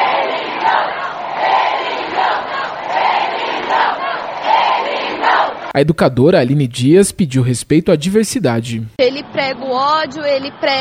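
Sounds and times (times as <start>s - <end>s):
protest crowd chanting slogans: 0.0s - 5.8s
speech: 5.8s - 10.7s.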